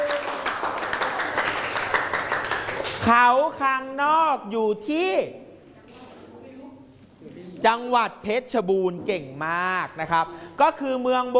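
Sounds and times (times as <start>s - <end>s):
children clapping for a classmate: 0.0s - 3.1s
speech: 3.0s - 5.4s, 7.2s - 11.3s.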